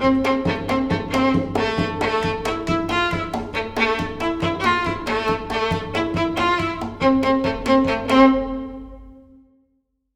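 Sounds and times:
string ensemble: 0:00.0 - 0:09.3.

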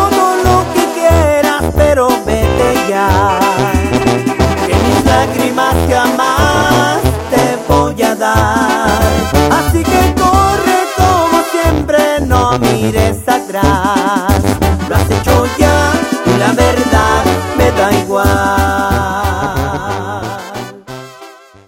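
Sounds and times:
banda music: 0:00.0 - 0:21.6.

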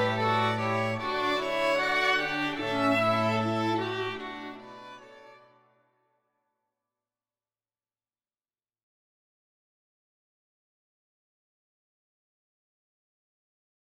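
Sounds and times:
string quartet: 0:00.0 - 0:05.6.

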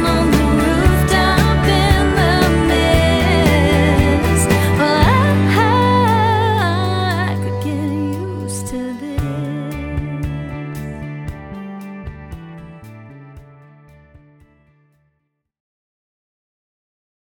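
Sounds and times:
pop singer singing: 0:00.0 - 0:11.0.

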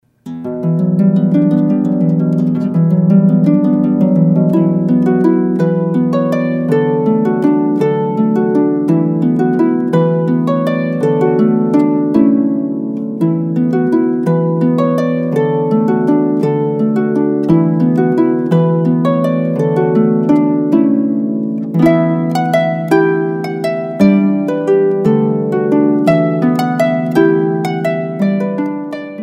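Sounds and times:
harp playing: 0:00.0 - 0:29.2.

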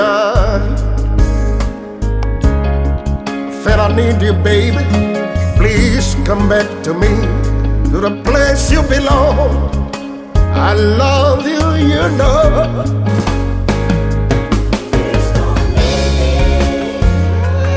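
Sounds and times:
soul singer singing: 0:00.0 - 0:02.6, 0:03.2 - 0:17.7.

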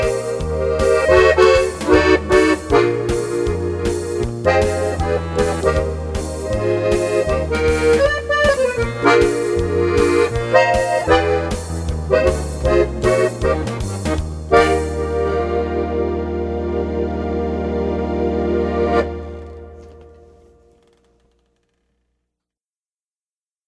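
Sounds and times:
Italian band playing: 0:00.0 - 0:20.4.

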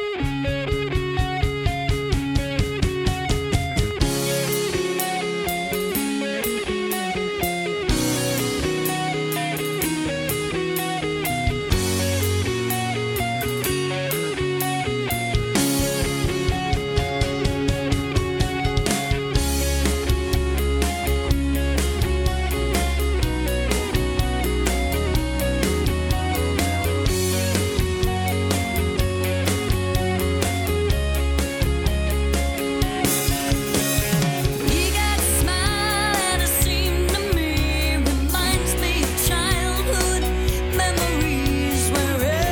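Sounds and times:
cover band playing: 0:00.1 - 0:42.4.

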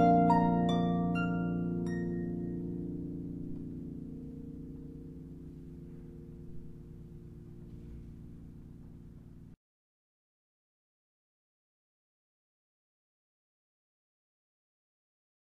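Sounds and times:
harpist playing an Irish air: 0:00.0 - 0:09.5.

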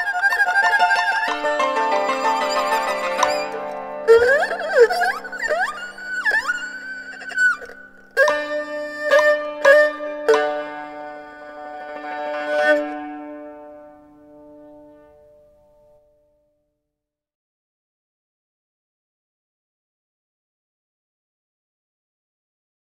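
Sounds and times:
Chinese ensemble music: 0:00.0 - 0:15.3.

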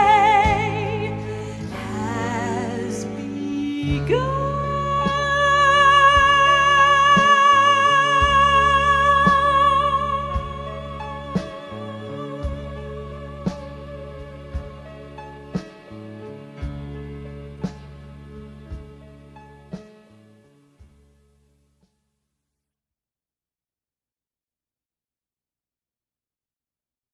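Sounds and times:
Broadway singer singing: 0:00.0 - 0:15.2.

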